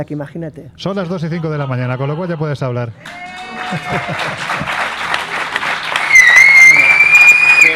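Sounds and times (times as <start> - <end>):
speech: 0.0 - 4.9
applause-like noise: 3.0 - 7.7
laughter: 3.4 - 5.6
woman whistling: 6.0 - 7.7.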